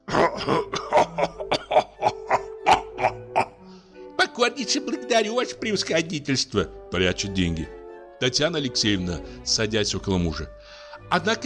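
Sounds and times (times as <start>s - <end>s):
person coughing gruffly and irritably: 0.0s - 3.5s
throat-clearing grunts: 0.0s - 3.6s
speech: 0.4s - 1.3s, 4.4s - 11.4s.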